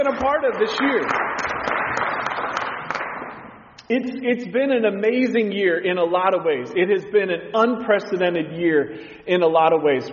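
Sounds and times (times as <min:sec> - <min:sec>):
speech: 0:00.0 - 0:01.3, 0:03.9 - 0:10.1
audience hand clapping: 0:00.0 - 0:03.8.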